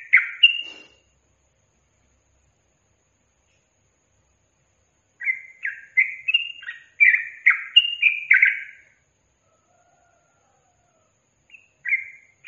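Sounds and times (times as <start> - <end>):
yellow-vented bulbul singing: 0.0 - 1.0, 5.0 - 9.0, 11.4 - 12.4.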